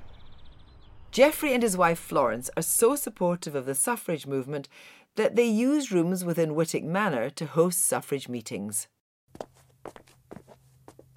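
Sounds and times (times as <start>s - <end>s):
speech: 1.2s - 10.0s
footsteps walking through a manor house: 9.3s - 11.1s.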